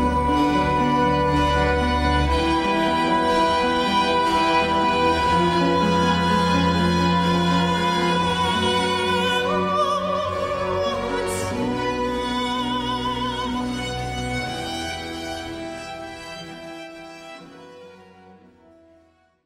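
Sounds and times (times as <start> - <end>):
countertenor singing: 0.0 - 14.2.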